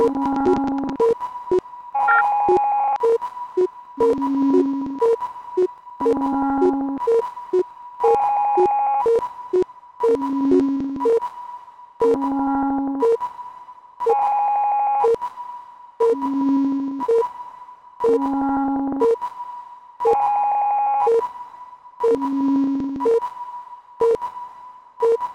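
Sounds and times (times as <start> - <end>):
sine wave tone: 0.0 - 1.3, 2.0 - 25.3.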